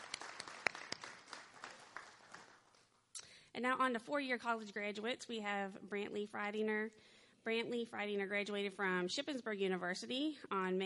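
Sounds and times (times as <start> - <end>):
audience applause: 0.0 - 2.7
speech: 3.6 - 10.8.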